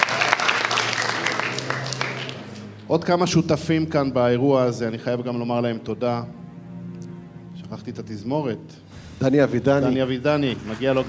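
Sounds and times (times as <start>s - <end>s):
audience applause at a large event: 0.0s - 2.8s, 10.5s - 11.0s
speech: 2.9s - 6.4s, 7.8s - 11.0s.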